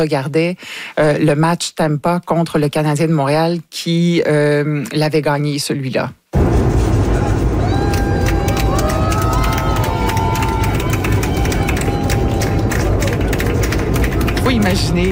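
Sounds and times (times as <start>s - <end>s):
speech: 0.0s - 6.5s, 14.5s - 15.1s
airplane passengers applauding in flight: 7.3s - 15.1s.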